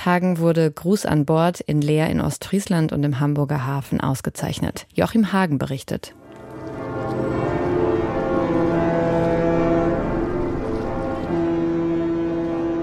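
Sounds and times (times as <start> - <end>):
speech: 0.0 - 6.2
ship typhon horns in the Hamburg harbour: 6.1 - 12.8
church bells of the Hamburger Michel: 6.2 - 12.8.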